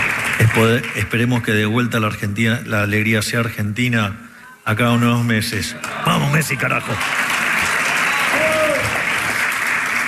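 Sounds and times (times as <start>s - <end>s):
crowd applause: 0.0s - 1.2s, 5.8s - 10.0s
speech: 0.5s - 7.2s.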